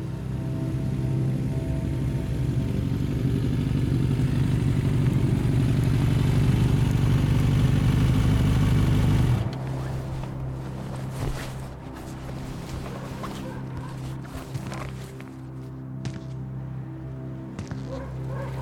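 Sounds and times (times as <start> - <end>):
motorcycle engine easing off the throttle coasting down a slope: 0.0 - 16.4.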